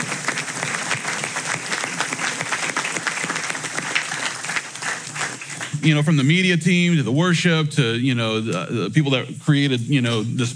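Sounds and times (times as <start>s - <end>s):
large crowd applause: 0.0s - 6.4s
speech: 5.8s - 10.5s.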